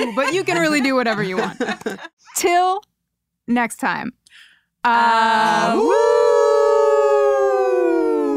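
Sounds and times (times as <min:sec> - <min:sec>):
laughter: 0:00.0 - 0:02.2
speech: 0:00.0 - 0:02.9, 0:03.5 - 0:06.2
people howling like werewolves: 0:05.4 - 0:08.3.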